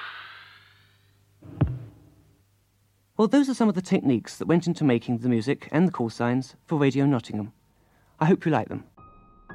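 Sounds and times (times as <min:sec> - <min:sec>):
thump: 0:01.5 - 0:02.2
thick elastic band being plucked: 0:01.5 - 0:02.3
speech: 0:03.2 - 0:07.6, 0:08.2 - 0:08.9.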